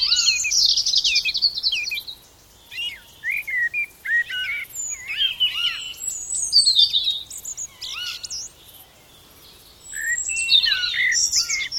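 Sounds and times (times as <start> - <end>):
early morning bird song with falling whistle and upslurred notes: 0.0 - 8.5, 9.8 - 11.7.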